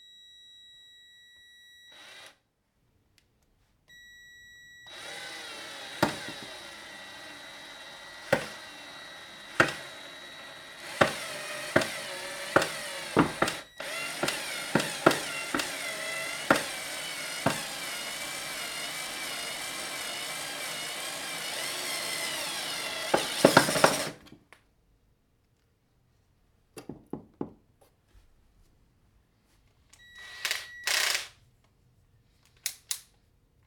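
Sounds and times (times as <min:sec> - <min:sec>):
cordless screwdriver: 0:02.0 - 0:02.4, 0:04.9 - 0:24.2, 0:30.2 - 0:31.3.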